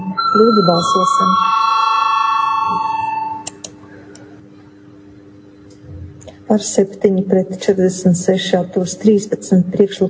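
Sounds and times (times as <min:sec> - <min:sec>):
parliament voting bell ringing before a vote: 0:00.0 - 0:03.5
speech: 0:00.4 - 0:01.6, 0:06.5 - 0:10.0.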